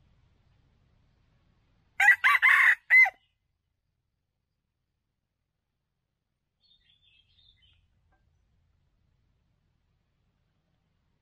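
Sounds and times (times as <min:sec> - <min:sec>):
red junglefowl crowing: 0:02.0 - 0:03.2.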